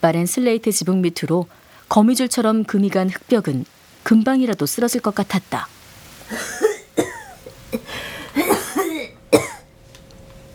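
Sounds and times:
speech: 0.0s - 6.6s
harsh coughing: 6.3s - 9.6s
rough breathing: 7.8s - 8.4s.

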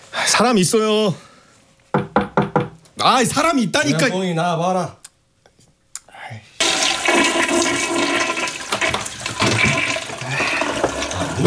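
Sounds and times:
speech: 0.4s - 1.3s, 3.0s - 5.0s
toilet flushing: 6.6s - 11.4s.

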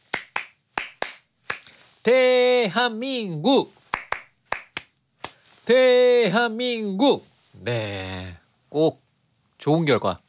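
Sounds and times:
group hand clapping: 0.0s - 1.7s, 3.9s - 5.4s
speech: 2.0s - 3.8s, 5.7s - 9.0s, 9.6s - 10.2s.

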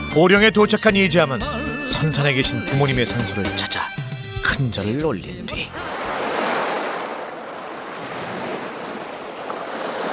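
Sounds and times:
speech: 0.2s - 3.9s, 4.6s - 6.0s
waves washing onto a seashore: 4.4s - 10.1s
gusting wind: 5.8s - 10.1s.

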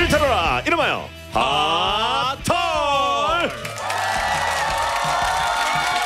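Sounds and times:
speech: 0.1s - 1.9s
crowd cheering: 3.2s - 6.0s
applause: 3.4s - 6.0s.

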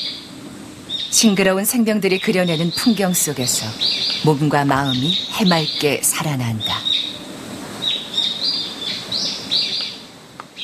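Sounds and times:
birds singing outdoors: 0.0s - 10.6s
soft ambient hum: 0.0s - 10.6s
speech: 1.2s - 7.1s.

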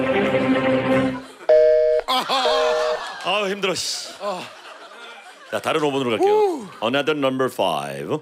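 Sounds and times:
laughter: 0.2s - 7.2s
telephone ringback tune: 1.5s - 3.0s
warbling beep: 1.6s - 3.0s
speech: 3.5s - 4.6s, 5.5s - 8.1s.

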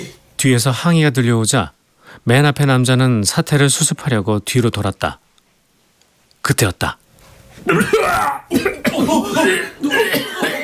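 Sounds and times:
speech: 0.1s - 5.2s, 6.5s - 7.0s, 7.6s - 10.2s
heavy coughing: 7.6s - 10.6s.

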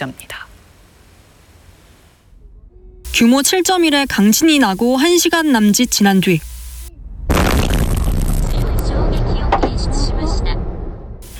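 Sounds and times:
speech: 0.0s - 0.4s, 3.2s - 6.5s
shopping mall explosion: 6.9s - 11.3s.

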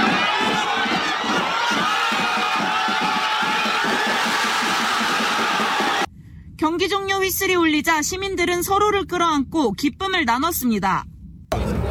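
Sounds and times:
crowd cheering in a public square: 0.0s - 6.1s
speech: 7.2s - 11.6s.

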